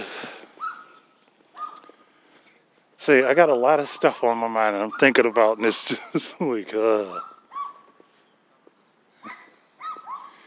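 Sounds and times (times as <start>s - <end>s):
dogs barking: 0.6s - 1.9s, 4.0s - 5.7s, 7.0s - 8.0s, 9.2s - 10.4s
speech: 3.1s - 7.3s.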